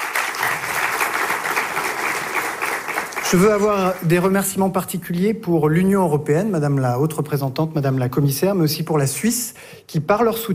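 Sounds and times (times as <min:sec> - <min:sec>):
audience applause: 0:00.0 - 0:04.4
speech: 0:03.3 - 0:10.5.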